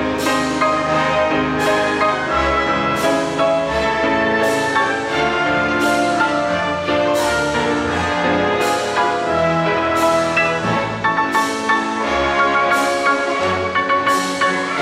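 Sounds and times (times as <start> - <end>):
piano concerto in A major: 0.0 - 14.8.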